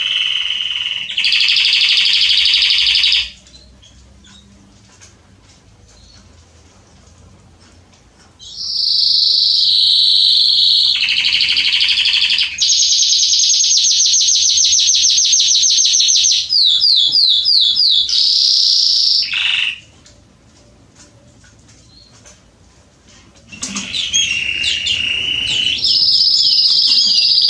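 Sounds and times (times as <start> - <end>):
canary rapid trill and slurred notes: 0.0 - 3.4, 8.4 - 19.9, 23.8 - 27.4.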